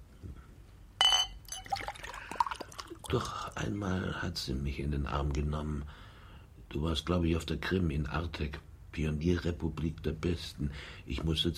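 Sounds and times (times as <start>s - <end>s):
glass clink: 1.0s - 2.9s
drink being poured into a glass: 1.1s - 3.6s
speech: 3.1s - 6.1s, 6.7s - 11.5s.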